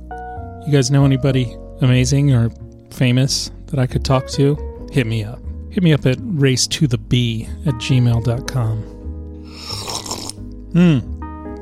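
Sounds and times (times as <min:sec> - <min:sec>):
speech: 0:00.7 - 0:09.9, 0:10.7 - 0:11.1
person slurping Winslow Tea: 0:09.4 - 0:10.5.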